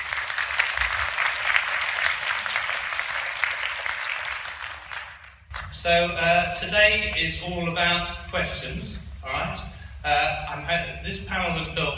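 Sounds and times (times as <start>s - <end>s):
crowd clapping: 0.0s - 5.8s
speech: 5.8s - 11.9s.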